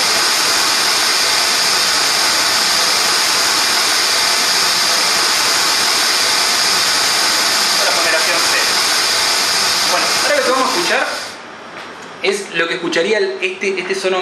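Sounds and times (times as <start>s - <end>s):
pink noise test signal: 0.0s - 11.4s
speech: 10.7s - 11.2s, 12.2s - 14.1s.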